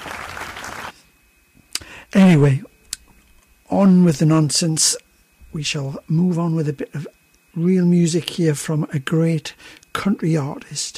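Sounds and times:
round of applause: 0:00.0 - 0:01.0
speech: 0:02.1 - 0:02.7, 0:03.7 - 0:10.9.

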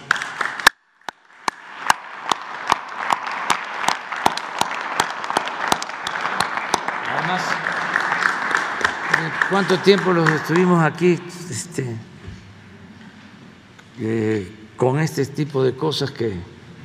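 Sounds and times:
audience applause: 0:00.0 - 0:00.7, 0:01.4 - 0:11.2
speech: 0:09.5 - 0:12.1, 0:14.0 - 0:16.5.

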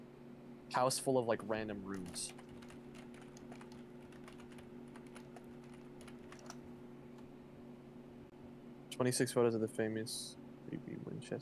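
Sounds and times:
low constant electrical hum: 0:00.0 - 0:11.4
speech: 0:00.7 - 0:02.5, 0:09.0 - 0:11.4
fingers typing a search query on a computer keyboard: 0:01.9 - 0:06.6.

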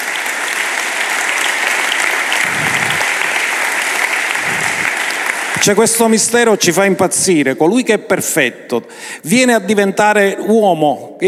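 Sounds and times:
audience applause: 0:00.0 - 0:06.0
speech: 0:05.6 - 0:11.2.

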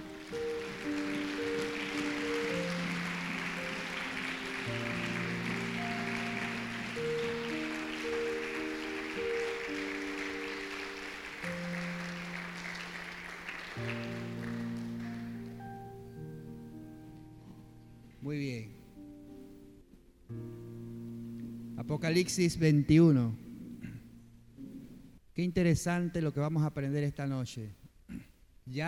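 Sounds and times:
audience applause: 0:00.0 - 0:15.6
speech: 0:21.9 - 0:23.4, 0:25.4 - 0:27.8.

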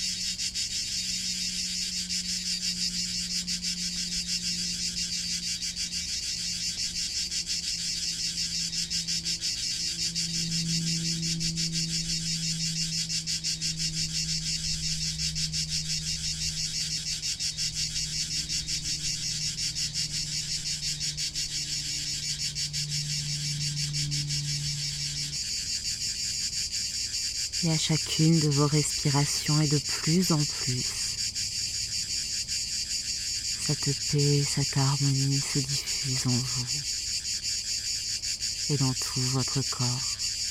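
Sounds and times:
low droning hum: 0:00.0 - 0:29.0
cicada chorus buzzing: 0:00.0 - 0:40.4
speech: 0:27.6 - 0:30.8, 0:33.8 - 0:37.0, 0:38.7 - 0:40.2.

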